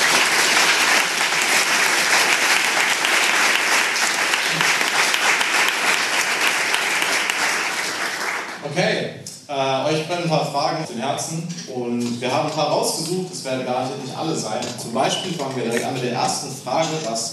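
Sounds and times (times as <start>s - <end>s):
large audience applause: 0.0s - 8.6s
speech: 9.6s - 17.3s.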